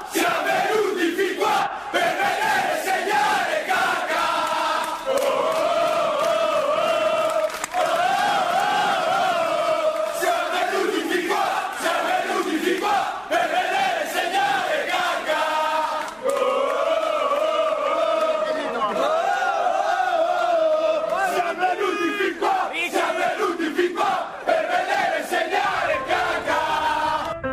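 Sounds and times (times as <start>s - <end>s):
football supporters chanting a song: 0.0s - 27.4s.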